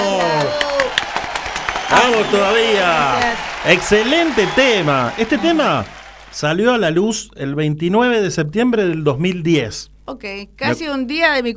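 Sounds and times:
audience applause: 0.0s - 6.9s
speech: 2.0s - 11.5s.

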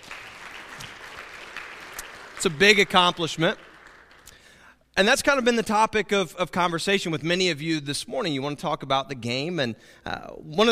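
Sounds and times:
audience applause: 0.0s - 4.4s
speech: 2.4s - 3.7s, 5.0s - 10.7s.

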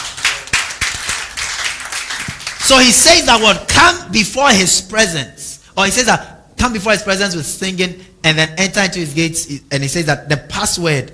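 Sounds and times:
crowd clapping: 0.0s - 3.0s
speech: 2.7s - 11.1s.

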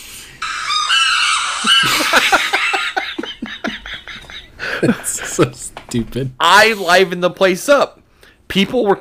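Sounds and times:
chimpanzees screaming: 0.4s - 3.3s
laughter: 1.6s - 5.7s
speech: 4.8s - 8.9s.

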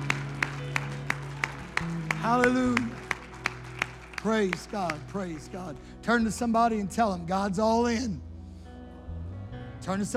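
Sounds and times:
audience hands clapping: 0.0s - 5.9s
speech: 2.2s - 3.0s, 4.2s - 8.3s, 9.8s - 10.1s.

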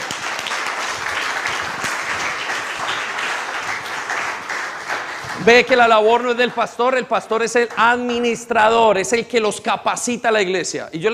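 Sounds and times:
audience applause: 0.0s - 6.4s
speech: 5.4s - 11.1s.

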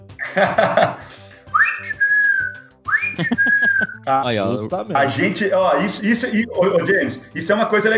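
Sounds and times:
laughter: 0.2s - 1.2s, 3.0s - 4.0s
speech: 0.4s - 1.2s, 4.0s - 7.9s
whistled imitation of great kiskadee song: 1.5s - 4.1s.

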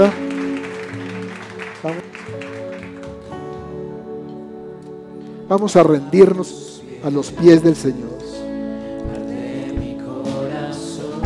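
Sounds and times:
speech: 0.0s - 0.2s, 1.8s - 2.2s, 5.5s - 8.2s
audience applause: 0.0s - 3.7s.

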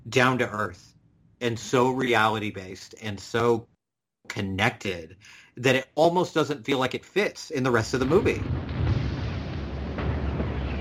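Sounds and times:
speech: 0.1s - 8.7s
bomb explosion: 7.8s - 10.8s.

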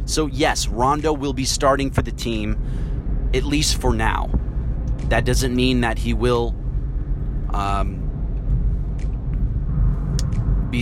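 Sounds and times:
road rumble inside a car moving in traffic: 0.0s - 10.8s
speech: 0.1s - 4.4s, 5.1s - 6.6s, 7.5s - 8.0s.

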